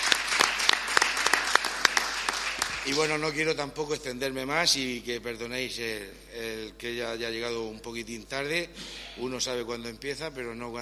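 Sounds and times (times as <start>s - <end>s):
audience applause at a carnival presentation event: 0.0s - 3.4s
speech: 2.8s - 10.7s.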